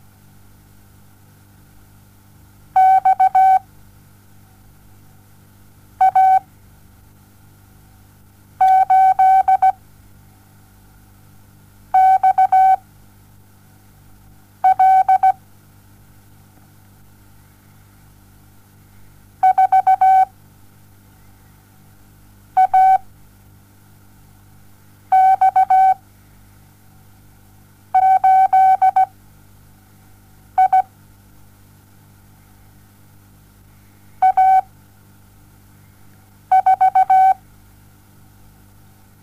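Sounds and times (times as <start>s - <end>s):
morse code beeps: 2.8s - 3.6s, 6.0s - 6.4s, 8.6s - 9.8s, 12.0s - 12.8s, 14.6s - 15.4s, 19.4s - 20.3s, 22.6s - 23.0s, 25.1s - 26.0s, 28.0s - 29.1s, 30.6s - 30.9s, 34.2s - 34.7s, 36.5s - 37.4s.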